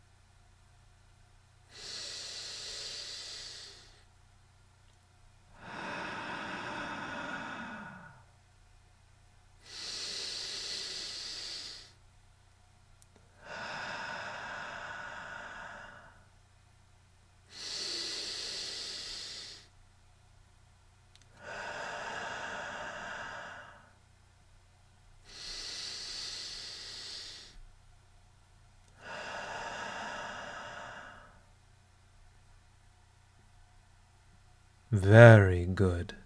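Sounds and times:
slow paced breathing: 1.7 - 4.1, 5.6 - 8.3, 9.6 - 12.0, 13.4 - 16.3, 17.5 - 19.8, 21.3 - 24.0, 25.2 - 27.6, 28.9 - 31.6, 34.9 - 36.2
speech: 34.9 - 36.2.

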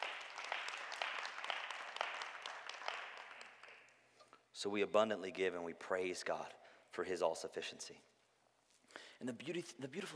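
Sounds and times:
audience clapping: 0.0 - 4.0
speech: 4.6 - 8.1, 9.2 - 10.1.

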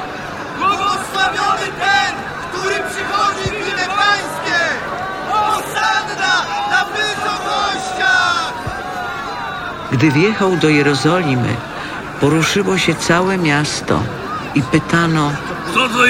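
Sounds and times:
crowd shouting loudly: 0.0 - 16.0
speech: 9.9 - 16.0.

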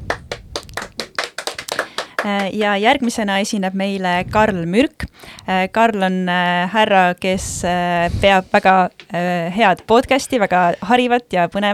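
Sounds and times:
audience applause: 0.0 - 2.7
speech: 2.2 - 11.7.

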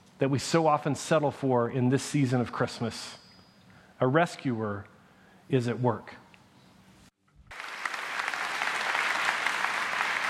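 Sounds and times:
speech: 0.2 - 3.2, 4.0 - 4.9, 5.5 - 6.2
audience clapping after a song: 7.5 - 10.2.

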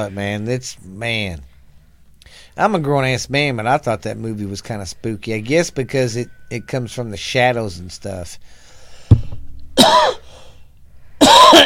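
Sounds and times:
speech: 0.0 - 1.5, 2.3 - 8.6
knock on microphone: 9.1 - 9.5
harsh coughs: 9.8 - 10.4, 11.2 - 11.6.

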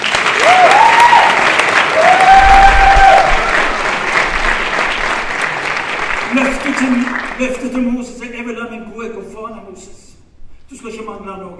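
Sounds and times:
audience applause: 0.0 - 7.8
speech: 10.7 - 11.5.

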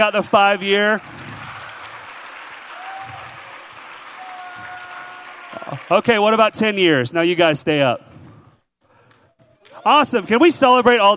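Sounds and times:
speech: 0.0 - 1.2, 5.7 - 8.1, 9.8 - 11.1
audience applause: 0.1 - 6.6, 9.9 - 11.1.

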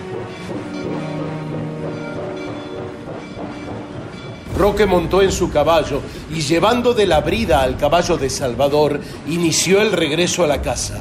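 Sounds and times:
metallic whine: 0.0 - 8.6
rhythmic rail clatter: 0.0 - 10.9
train departing: 0.0 - 10.9
speech: 4.6 - 10.9.

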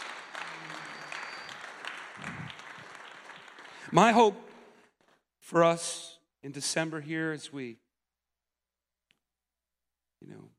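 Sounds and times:
audience clapping: 0.0 - 5.2
speech: 3.9 - 4.5, 5.5 - 7.8.

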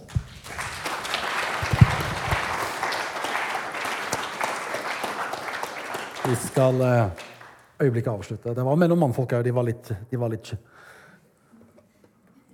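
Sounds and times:
audience applause: 0.0 - 7.7
speech: 6.3 - 7.2, 7.8 - 10.7.

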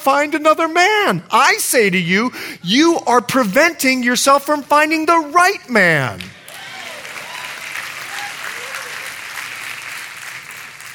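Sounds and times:
speech: 0.0 - 6.3
audience clapping: 6.1 - 10.9.

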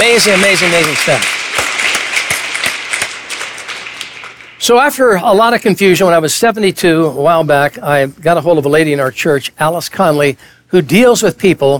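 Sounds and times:
audience applause: 0.0 - 4.8
speech: 0.1 - 1.4, 4.6 - 11.7.

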